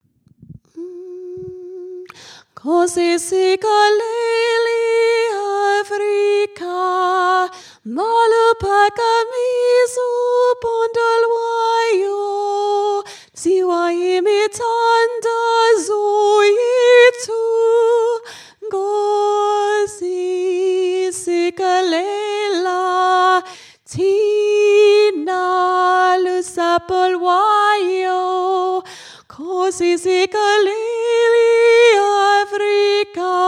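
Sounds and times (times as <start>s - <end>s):
soprano singing: 0.7s - 33.4s.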